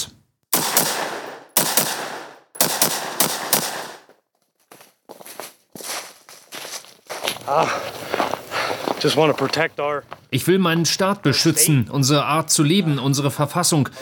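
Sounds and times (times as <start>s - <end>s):
gunfire in a forest: 0.5s - 4.1s
speech: 7.5s - 8.0s, 9.0s - 13.9s.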